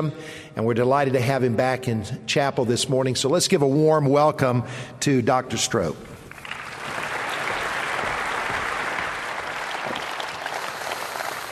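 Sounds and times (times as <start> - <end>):
speech: 0.0 - 6.1
audience applause: 6.3 - 11.4.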